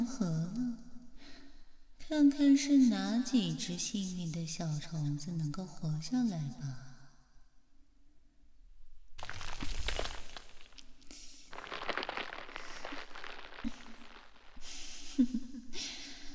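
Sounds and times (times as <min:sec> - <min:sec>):
speech: 0:02.1 - 0:06.9
breath blowing away oat husks: 0:09.2 - 0:15.2.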